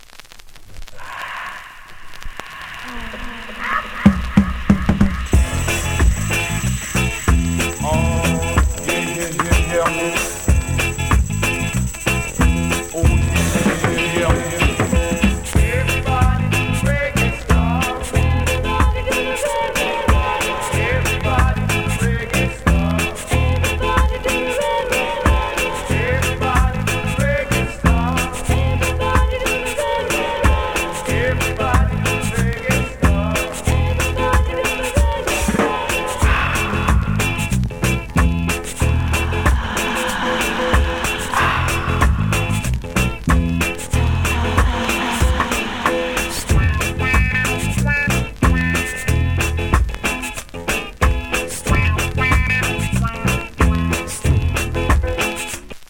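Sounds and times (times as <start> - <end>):
reggae stomp music: 3.5 - 55.8.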